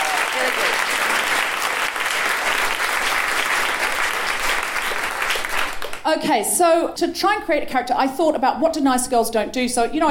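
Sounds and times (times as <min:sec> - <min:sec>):
audience applause: 0:00.0 - 0:06.0
speech: 0:06.1 - 0:10.0.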